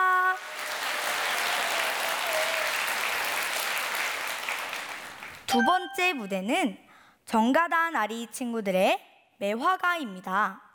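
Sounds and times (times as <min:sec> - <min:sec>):
audience applause: 0:00.0 - 0:05.5
brief pitched tone: 0:05.5 - 0:06.4
speech: 0:05.5 - 0:10.6.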